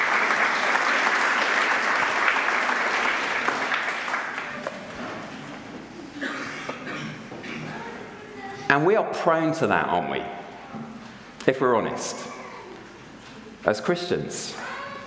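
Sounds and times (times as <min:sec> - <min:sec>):
round of applause: 0:00.0 - 0:05.0
speech: 0:08.8 - 0:10.4, 0:11.4 - 0:12.4, 0:13.6 - 0:14.6.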